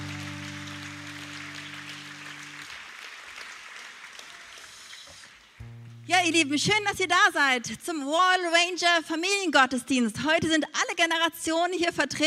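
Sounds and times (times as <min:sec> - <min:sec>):
audience applause: 0:00.0 - 0:05.6
speech: 0:06.1 - 0:12.2.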